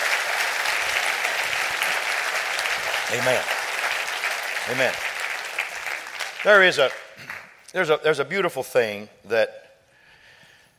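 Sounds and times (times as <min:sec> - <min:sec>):
crowd clapping hands: 0:00.0 - 0:07.7
speech: 0:03.1 - 0:03.6, 0:04.7 - 0:05.1, 0:06.4 - 0:07.0, 0:07.7 - 0:09.6.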